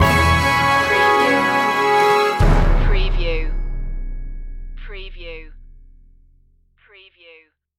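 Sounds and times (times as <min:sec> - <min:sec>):
nostalgic TV stinger: 0:00.0 - 0:05.7.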